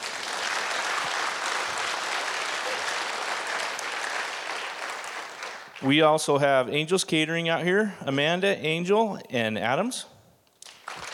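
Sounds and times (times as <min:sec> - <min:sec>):
audience clapping: 0:00.0 - 0:06.0, 0:10.6 - 0:11.1
speech: 0:05.8 - 0:10.1.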